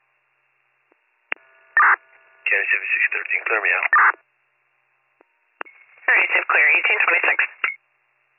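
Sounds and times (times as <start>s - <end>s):
phone dialing tones: 1.4s - 2.0s
speech: 2.5s - 4.3s, 6.5s - 7.5s.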